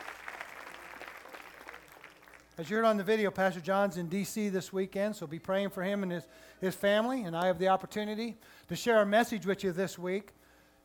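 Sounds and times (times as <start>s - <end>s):
audience clapping: 0.0s - 3.1s
speech: 2.6s - 10.4s.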